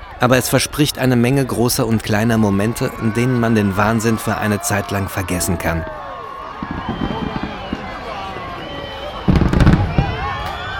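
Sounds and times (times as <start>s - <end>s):
speech: 0.2s - 6.0s, 6.6s - 7.3s
fireworks exploding over Sydney Harbour: 6.4s - 10.7s.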